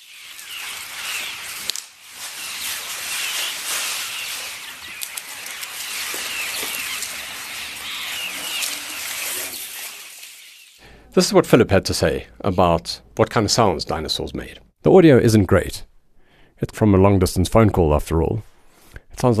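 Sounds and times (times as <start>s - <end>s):
herd of elephants grazing in the Sabi River: 0.0s - 10.8s
speech: 11.1s - 15.9s, 16.6s - 18.5s, 19.2s - 19.3s.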